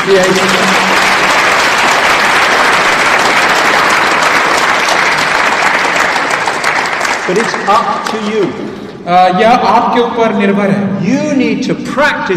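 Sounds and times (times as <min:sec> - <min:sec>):
speech: 0:00.0 - 0:00.7, 0:07.3 - 0:12.3
audience clapping: 0:00.0 - 0:08.8.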